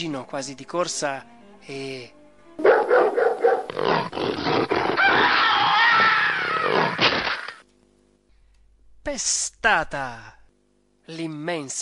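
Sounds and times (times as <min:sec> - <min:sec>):
speech: 0:00.0 - 0:03.0, 0:09.0 - 0:10.4, 0:11.1 - 0:11.8
dog barking ferociously: 0:02.6 - 0:03.8
dog snarling and growling: 0:02.6 - 0:07.5.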